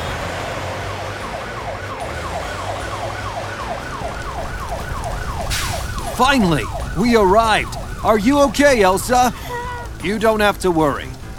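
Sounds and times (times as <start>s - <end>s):
emergency siren wailing: 1.0s - 11.3s
low engine rumble: 2.5s - 11.3s
speech: 6.2s - 9.4s, 10.0s - 11.3s.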